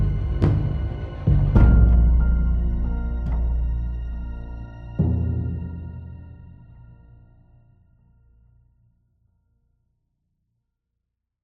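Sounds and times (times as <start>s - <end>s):
tense music loop: 0.0s - 7.3s.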